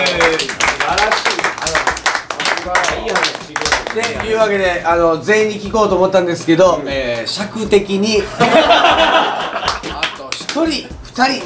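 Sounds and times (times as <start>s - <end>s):
applause: 0.0s - 4.3s
speech: 4.0s - 9.2s, 10.7s - 11.4s
laughter: 8.2s - 10.3s.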